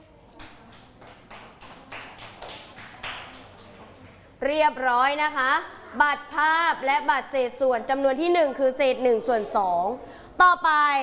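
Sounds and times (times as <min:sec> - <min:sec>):
children clapping for a group: 0:00.4 - 0:04.3
speech: 0:04.4 - 0:11.0.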